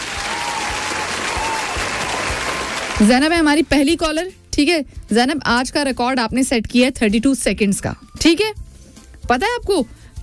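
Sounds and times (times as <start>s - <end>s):
applause for a group of children after a timed quiz game: 0.0s - 3.4s
speech: 3.0s - 8.6s, 9.3s - 10.2s.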